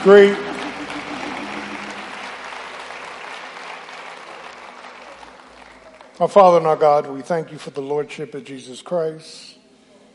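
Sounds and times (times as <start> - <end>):
speech: 0.0 - 0.4, 6.2 - 9.6
audience hand clapping for choir: 0.0 - 6.6.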